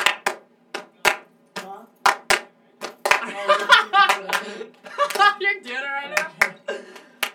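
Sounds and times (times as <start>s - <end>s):
rhythmic hand clapping: 0.0s - 7.3s
laughter: 3.1s - 7.3s
speech: 4.2s - 6.7s.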